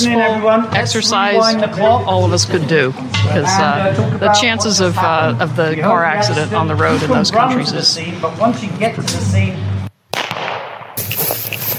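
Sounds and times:
speech: 0.0 - 9.7
gunshot crack: 10.1 - 11.0
bullet narrowly missing: 10.1 - 11.2.

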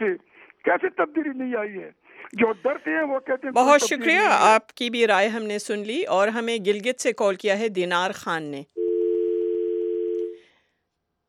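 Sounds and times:
speech: 0.0 - 8.8
dial tone after a caller's line dropped during a radio call-in: 8.8 - 10.4.

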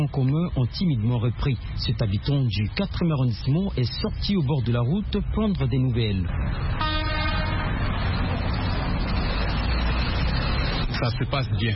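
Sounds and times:
speech: 0.0 - 7.1, 11.0 - 11.7
motorcycles approaching on a city road: 6.2 - 11.7.

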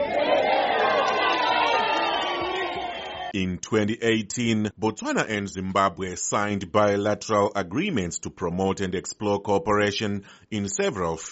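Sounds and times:
crowd cheering a welcome for a visiting guest from Zimbabwe in Botswana: 0.0 - 3.4
speech: 3.3 - 11.2.

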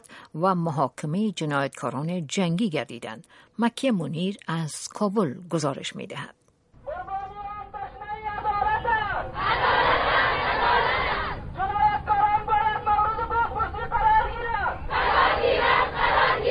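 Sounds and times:
speech: 0.3 - 6.4
protest marchers chanting slogans in Kabul: 7.0 - 16.5.

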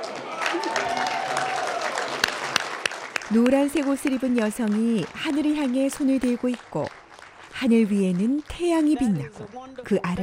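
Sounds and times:
scattered voices cheering: 0.0 - 2.6
crowd applauding: 0.0 - 10.2
speech: 3.3 - 7.0, 7.6 - 10.2.

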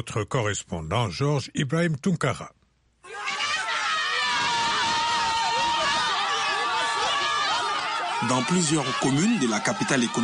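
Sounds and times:
speech: 0.0 - 3.4, 8.2 - 10.2
crowd of supporters of the ex-president cheering with joy: 3.0 - 10.2.

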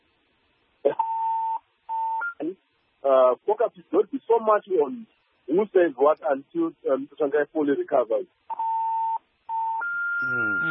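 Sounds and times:
incoming phone call beeps: 0.9 - 2.5, 8.5 - 10.6
speech: 3.1 - 8.4.

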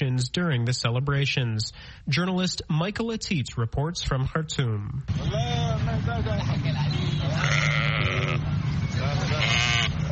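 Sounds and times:
constant low rumble of passing traffic: 0.0 - 10.1
speech: 0.2 - 7.8
sheep bleating at roadside livestock market: 7.3 - 8.5, 9.3 - 10.0.

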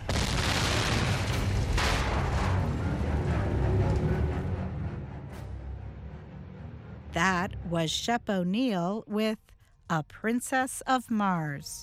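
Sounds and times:
crackling bursts: 0.0 - 4.3
Martian airship explosion in a science-fiction radio drama: 0.0 - 4.8
speech: 7.2 - 11.8.

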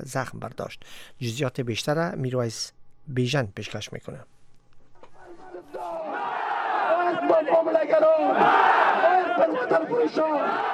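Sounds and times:
speech: 0.0 - 4.4, 7.3 - 8.8, 9.4 - 10.7
protesters chanting anti-government slogans: 5.7 - 10.7
shouting: 5.7 - 10.7.

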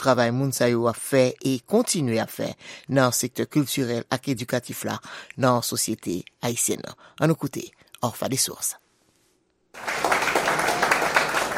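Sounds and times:
speech: 0.0 - 8.8
applause: 9.8 - 11.5.

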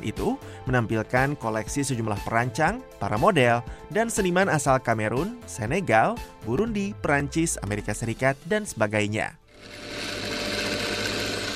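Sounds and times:
speech: 0.0 - 9.9
sewing machine in a tailoring workshop in Goma: 9.5 - 11.5.

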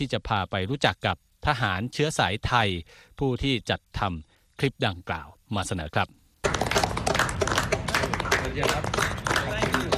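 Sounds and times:
speech: 0.0 - 6.8, 8.5 - 9.1
people clapping hands: 6.4 - 9.9.

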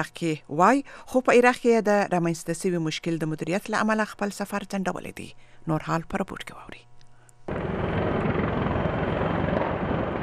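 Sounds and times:
speech: 0.0 - 6.9
military helicopters arriving at the US embassy in Baghdad: 7.5 - 10.2.

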